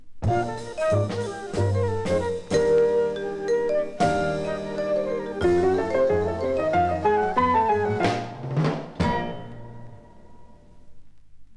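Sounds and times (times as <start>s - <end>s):
modern jazz septet playing: 0.3s - 8.4s.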